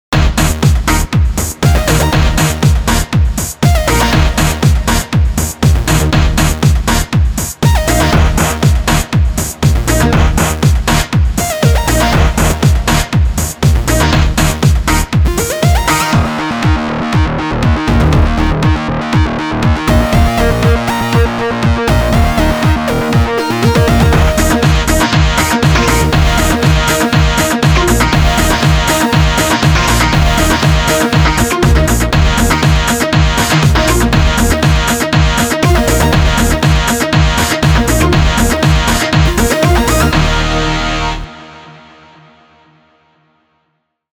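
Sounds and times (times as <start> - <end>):
techno music: 0.2 - 41.4.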